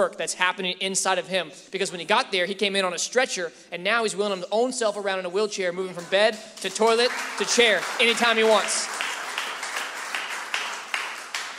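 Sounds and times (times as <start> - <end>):
speech: 0.0 - 9.1
audience clapping: 5.9 - 11.5
crowd noise: 5.9 - 11.5.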